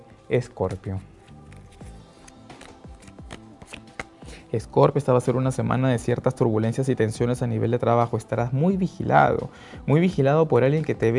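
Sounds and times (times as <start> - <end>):
speech: 0.3 - 1.1, 4.5 - 11.1
tarot cards being shuffled for a reading: 1.0 - 4.4.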